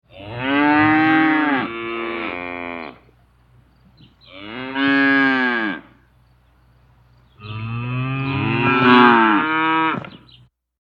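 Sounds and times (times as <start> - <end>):
cow chorus: 0.1 - 3.1, 4.2 - 6.0, 7.4 - 10.2.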